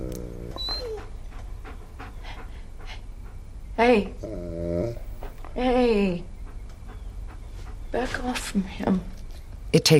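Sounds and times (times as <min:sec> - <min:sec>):
dog sniffing near a congealed pool of blood: 0:00.6 - 0:03.6, 0:05.0 - 0:08.8
speech: 0:03.8 - 0:04.4, 0:08.0 - 0:09.1, 0:09.7 - 0:09.9.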